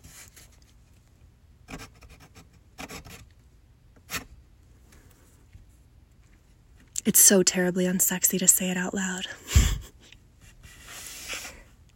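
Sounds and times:
pen scratching writing a phone number by hand: 1.7 - 3.2
speech: 7.1 - 9.6.

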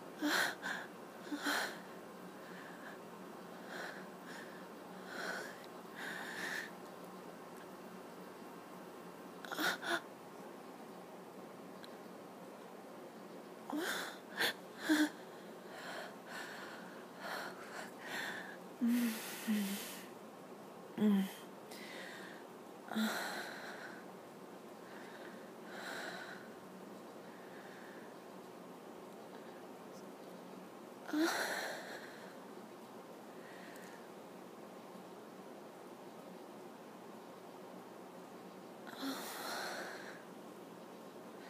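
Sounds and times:
woman moaning breathily: 0.2 - 3.0, 3.6 - 6.7, 9.5 - 10.1, 13.7 - 20.1, 21.0 - 22.3, 22.9 - 24.0, 31.1 - 32.3, 38.9 - 40.2.

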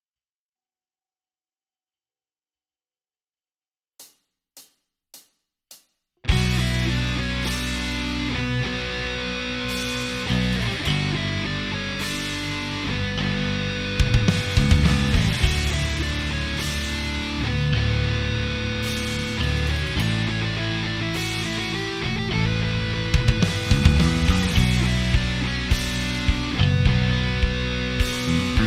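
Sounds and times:
instrumental music: 6.3 - 28.6.

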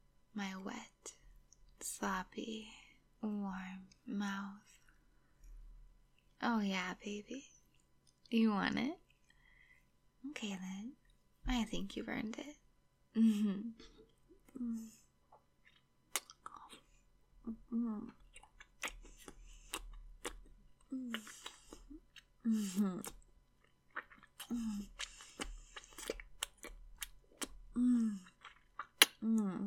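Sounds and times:
speech: 0.4 - 1.2, 2.0 - 4.7, 6.4 - 7.6, 8.3 - 9.0, 10.2 - 12.6, 13.2 - 14.0, 14.6 - 15.0, 17.5 - 18.2, 22.4 - 23.2, 24.5 - 24.9, 27.8 - 28.2, 29.2 - 29.6
wet chewing of someone eating lemons: 15.6 - 16.9, 18.1 - 29.2.

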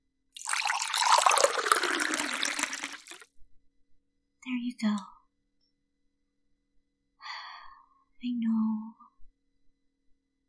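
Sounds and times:
water running into a water bottle: 0.4 - 3.2
speech: 4.7 - 5.2.

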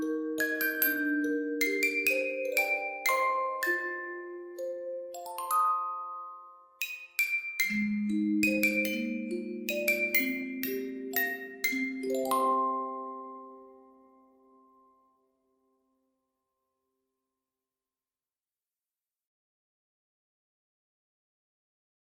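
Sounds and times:
lullaby music: 0.0 - 15.6.

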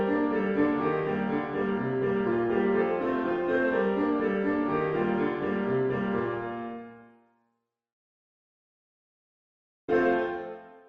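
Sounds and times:
piano cover: 0.0 - 7.1, 9.9 - 10.8.

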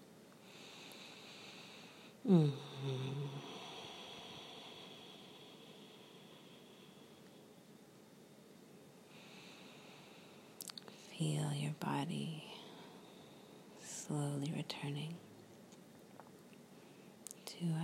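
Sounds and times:
nasal inhale in guided breathing: 0.4 - 7.5, 9.1 - 11.1
speech: 2.2 - 3.2, 11.2 - 12.6, 14.1 - 15.3, 17.6 - 17.8.

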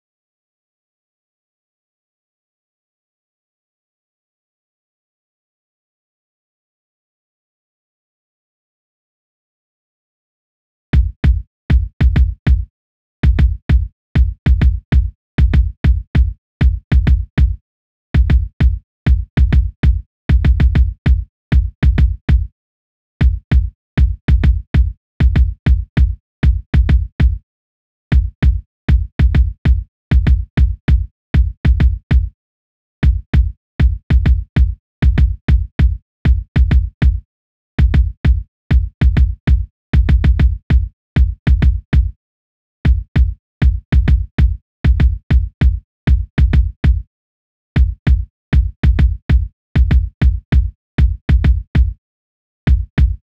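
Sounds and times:
instrumental kick drum: 11.0 - 17.6, 18.2 - 22.5, 23.2 - 27.4, 28.1 - 32.4, 33.0 - 37.2, 37.8 - 42.1, 42.9 - 47.0, 47.8 - 52.0, 52.7 - 53.2.

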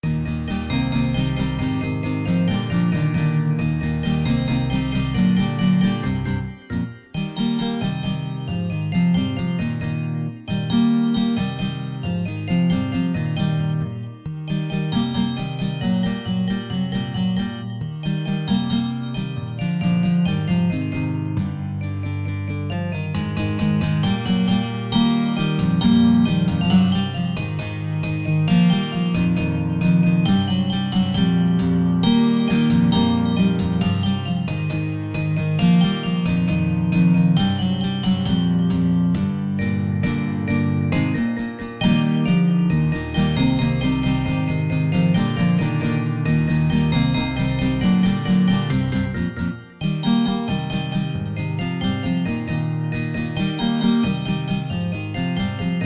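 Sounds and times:
guitar cover: 0.0 - 55.8.

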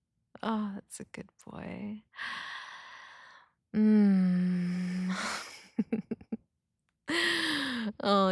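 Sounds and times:
speech: 0.4 - 2.5, 3.7 - 4.2, 5.8 - 6.4, 7.1 - 8.2
person gasping for air: 7.1 - 7.9.

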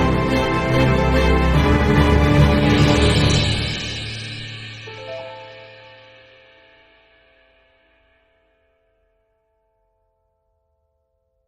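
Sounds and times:
orchestral cover music: 0.0 - 6.9.

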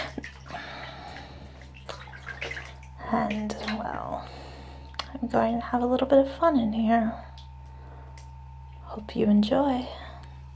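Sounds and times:
water splashing in shower: 0.0 - 4.0
low hum: 0.0 - 10.5
speech: 3.1 - 4.5, 5.1 - 7.3, 9.0 - 10.0.

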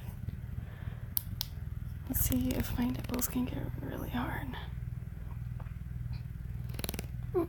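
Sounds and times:
low buzzing rumble: 0.0 - 7.4
wet sputtering pops: 1.2 - 3.6, 6.6 - 7.3
speech: 2.1 - 4.8
squeaky fart-like blurt as suction breaks: 6.6 - 7.4.

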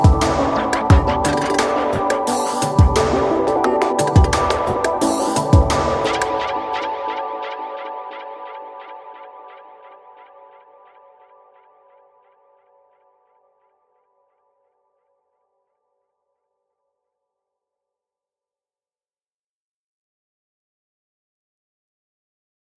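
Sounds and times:
ambient game music: 0.0 - 7.6.

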